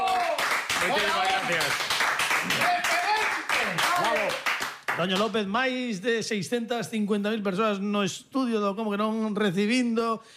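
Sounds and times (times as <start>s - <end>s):
audience applause and clapping: 0.0s - 5.2s
speech: 0.8s - 2.8s, 5.0s - 10.3s.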